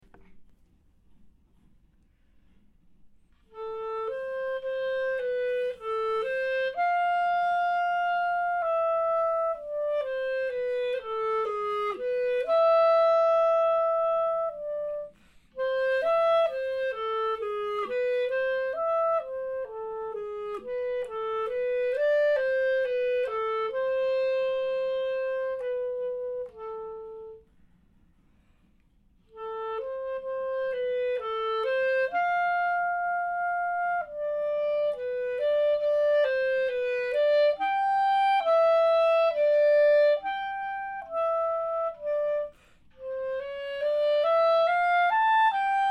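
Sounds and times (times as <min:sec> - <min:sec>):
clarinet: 0:00.0 - 0:45.8.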